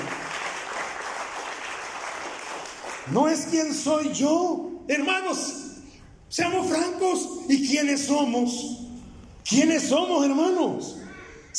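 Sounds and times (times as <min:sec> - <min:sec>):
audience applause: 0:00.0 - 0:03.2
speech: 0:03.1 - 0:05.6, 0:06.3 - 0:08.8, 0:09.5 - 0:11.0.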